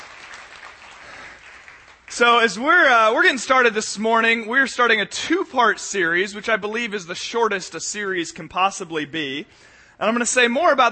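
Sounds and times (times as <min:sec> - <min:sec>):
applause from a room full of people: 0:00.0 - 0:02.2
speech: 0:02.2 - 0:10.9.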